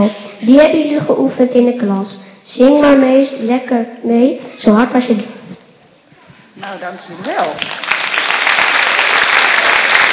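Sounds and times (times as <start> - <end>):
speech: 0.0 - 5.3, 6.6 - 8.0
audience applause: 7.3 - 10.1.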